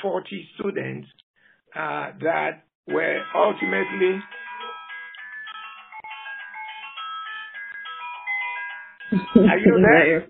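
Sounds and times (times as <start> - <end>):
speech: 0.0 - 4.5, 9.1 - 10.2
cell phone ringing: 2.9 - 10.1.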